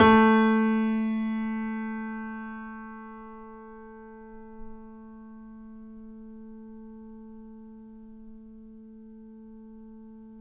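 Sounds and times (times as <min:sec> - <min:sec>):
grand piano note A2 played mezzo-forte: 0:00.0 - 0:05.1.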